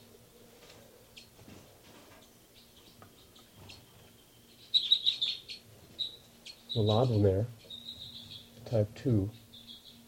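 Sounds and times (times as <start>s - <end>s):
low hum: 0.0s - 10.0s
bird chirps during a lab recording: 2.2s - 10.0s
speech: 6.8s - 7.6s, 8.7s - 9.4s.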